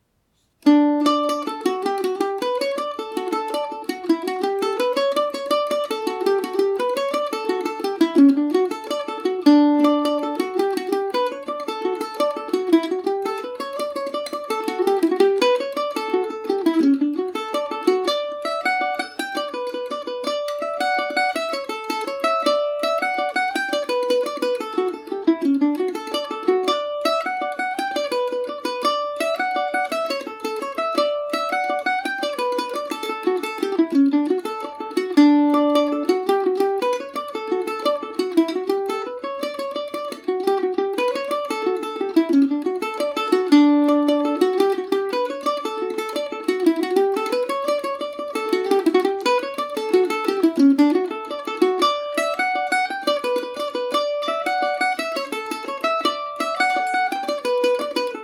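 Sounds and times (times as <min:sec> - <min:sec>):
mandolin in D major: 0:00.0 - 0:58.2.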